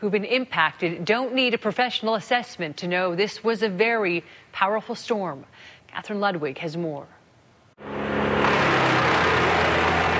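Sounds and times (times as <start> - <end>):
speech: 0.0 - 7.2
wood chippers shredding uprooted trees east of Rocky Mountain House: 8.2 - 10.1.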